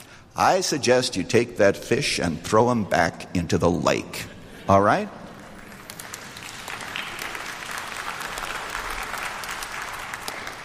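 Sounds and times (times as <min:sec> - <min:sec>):
speech: 0:00.4 - 0:05.2
audience applause: 0:05.3 - 0:10.6.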